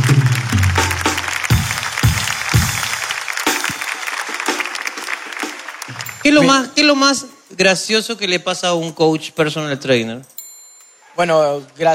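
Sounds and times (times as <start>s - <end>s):
applause: 0.0s - 6.7s
speech: 6.3s - 10.4s, 11.2s - 11.9s.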